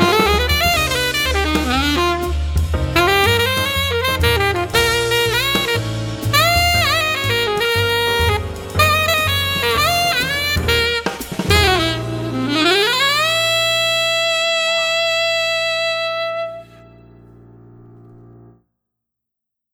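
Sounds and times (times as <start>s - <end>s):
alto jazz music: 0.0s - 18.6s.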